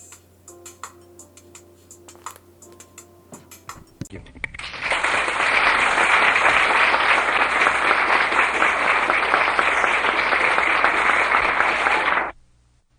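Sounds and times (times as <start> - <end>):
large audience applause: 4.7 - 12.3.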